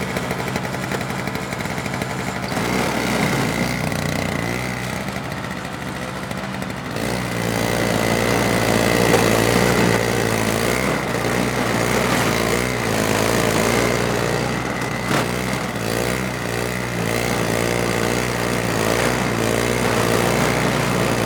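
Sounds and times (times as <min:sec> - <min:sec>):
snow blower pull start: 0:00.0 - 0:21.2.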